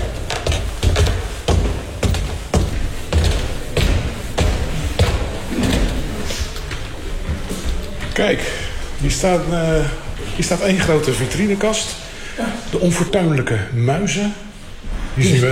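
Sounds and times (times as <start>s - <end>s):
footsteps on wooden stairs in a museum: 0.0s - 9.0s
speech: 8.2s - 14.5s, 15.2s - 15.5s.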